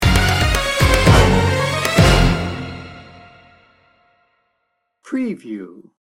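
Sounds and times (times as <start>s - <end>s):
Bollywood action hero music sting bumper: 0.0s - 3.9s.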